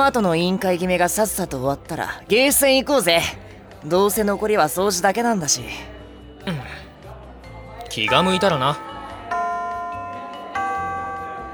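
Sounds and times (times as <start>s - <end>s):
speech: 0.0s - 6.7s, 7.9s - 8.9s
school bell ringing: 8.0s - 11.5s.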